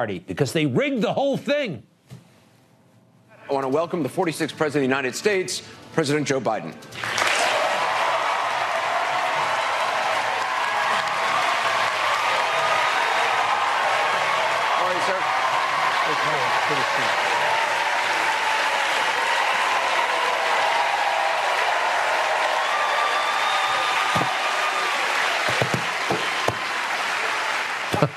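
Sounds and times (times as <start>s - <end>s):
speech: 0.0s - 1.9s, 3.5s - 7.2s
audience cheering and applauding at a CNN town hall for President Joe Biden: 7.0s - 28.1s.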